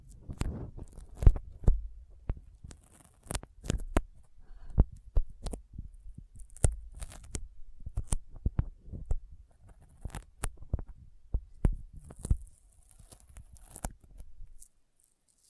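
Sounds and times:
sticky fingers pulling apart and tapping: 0.1s - 15.4s
soft low thumps: 0.3s - 2.6s, 3.5s - 9.5s, 10.4s - 12.4s.

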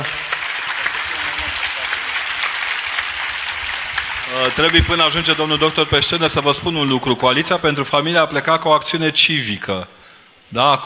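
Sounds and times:
audience applause: 0.0s - 7.7s
speech: 4.3s - 10.8s.

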